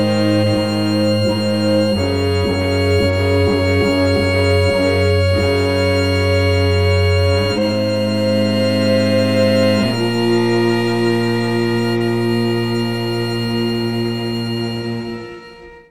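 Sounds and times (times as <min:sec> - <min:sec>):
string instruments playing: 0:00.0 - 0:15.8.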